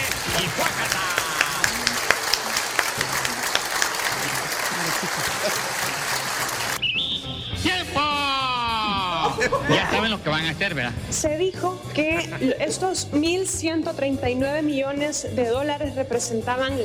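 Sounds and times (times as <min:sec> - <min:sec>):
applause in parliament: 0:00.0 - 0:06.8
laughter: 0:00.0 - 0:06.8, 0:08.0 - 0:10.7, 0:12.0 - 0:13.0
speech: 0:09.5 - 0:16.8.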